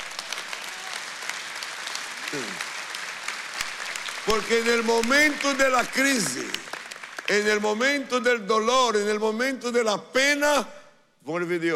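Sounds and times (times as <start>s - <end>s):
louder audience applause: 0.0s - 8.1s
speech: 2.3s - 2.7s, 4.2s - 6.7s, 7.3s - 11.7s.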